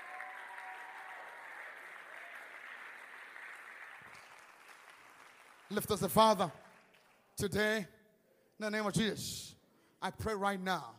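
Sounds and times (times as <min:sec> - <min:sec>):
audience clapping: 0:00.0 - 0:07.4
speech: 0:05.7 - 0:06.6, 0:07.4 - 0:08.0, 0:08.6 - 0:10.9.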